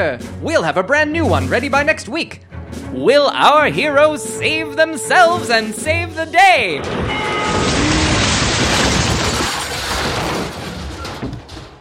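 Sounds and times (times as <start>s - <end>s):
speech: 0.0s - 7.6s
train crash of grinding metal: 6.6s - 11.7s
booming impacts: 6.7s - 11.7s
metal clanks: 6.8s - 11.7s.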